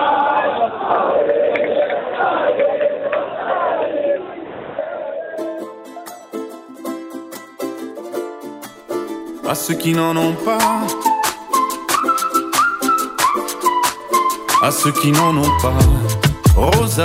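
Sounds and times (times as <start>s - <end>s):
football fans cheering and chanting: 0.0s - 5.8s
music: 5.4s - 17.0s
speech: 9.5s - 11.1s, 14.6s - 17.0s.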